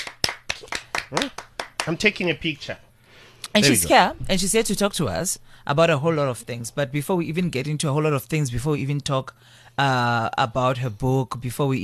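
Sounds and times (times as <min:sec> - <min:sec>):
hand clapping: 0:00.0 - 0:02.0
speech: 0:01.1 - 0:02.8, 0:03.5 - 0:11.8.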